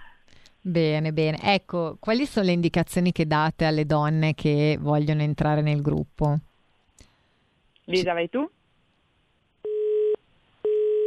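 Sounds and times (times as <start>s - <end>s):
speech: 0.6s - 6.5s, 7.9s - 8.6s
busy tone after dropped call: 9.7s - 11.0s.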